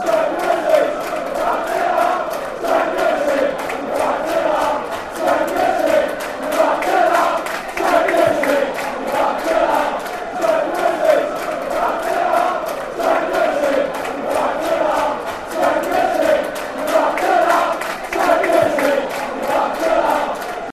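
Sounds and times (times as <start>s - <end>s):
football fans chanting: 0.0s - 20.7s.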